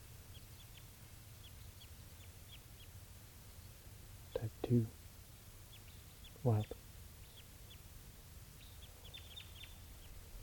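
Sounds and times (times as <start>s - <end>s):
wild bird calling with high downward-slurred chirps: 0.3s - 4.8s, 5.4s - 7.9s, 8.6s - 10.4s
speech: 4.4s - 5.0s, 6.4s - 6.8s.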